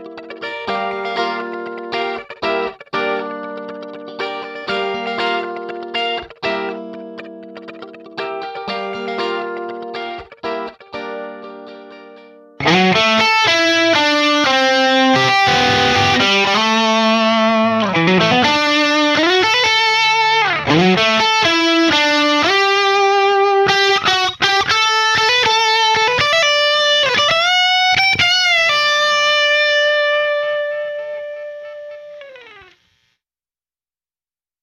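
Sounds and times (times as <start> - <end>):
guitar through vintage digital deep flange effect: 0.0 - 32.7.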